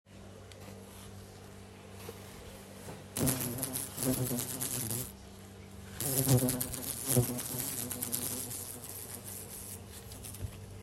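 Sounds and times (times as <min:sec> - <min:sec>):
fly buzzing: 0:03.2 - 0:05.2, 0:06.0 - 0:10.8.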